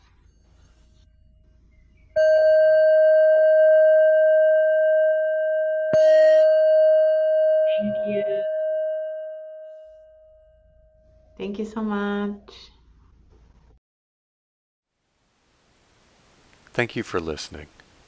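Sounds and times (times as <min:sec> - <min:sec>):
meditation bell ringing: 0:02.1 - 0:11.4
speech: 0:11.4 - 0:12.8, 0:16.8 - 0:17.8.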